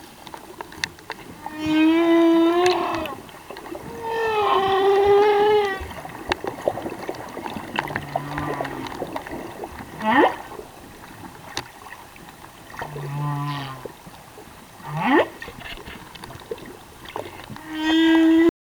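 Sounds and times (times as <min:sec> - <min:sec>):
humpback whale singing in Tonga: 0:01.3 - 0:11.2, 0:12.7 - 0:14.1, 0:14.7 - 0:16.1, 0:17.0 - 0:18.5.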